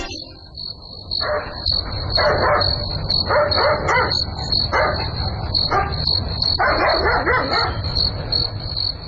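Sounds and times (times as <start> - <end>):
chorus of crickets and insects at night: 0.2 - 9.0
dog barking at night: 1.2 - 7.9.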